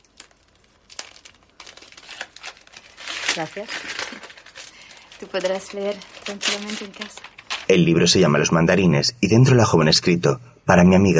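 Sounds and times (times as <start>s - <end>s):
wrapping paper crinkling and tearing as a gift-wrapped book is opened: 0.0s - 8.1s
speech: 3.4s - 4.3s, 5.2s - 11.1s.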